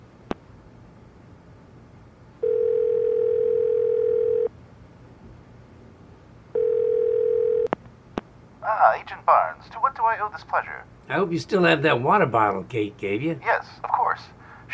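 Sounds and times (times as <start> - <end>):
telephone ringback tones: 2.4 - 4.5, 6.5 - 7.7
speech: 9.7 - 14.3.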